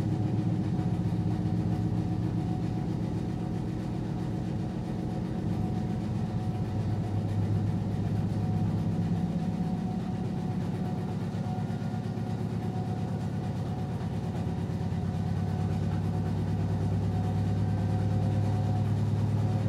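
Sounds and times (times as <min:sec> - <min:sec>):
front-load washing machine spinning far off: 0:00.0 - 0:19.6.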